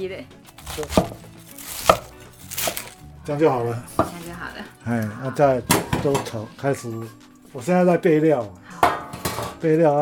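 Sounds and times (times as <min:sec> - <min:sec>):
speech: 0:00.0 - 0:02.0, 0:03.2 - 0:09.0, 0:09.6 - 0:10.0
chopping vegetables: 0:00.5 - 0:03.0, 0:03.9 - 0:04.6.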